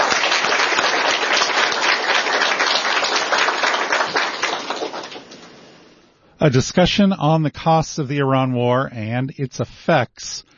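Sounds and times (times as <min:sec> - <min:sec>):
audience applause: 0:00.0 - 0:05.6
speech: 0:06.4 - 0:10.5.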